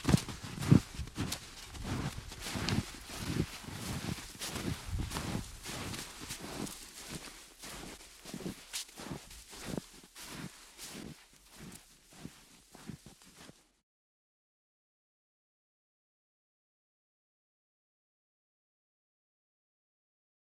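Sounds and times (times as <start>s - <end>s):
footsteps in snow approaching, stopping and passing by: 0.0s - 13.8s.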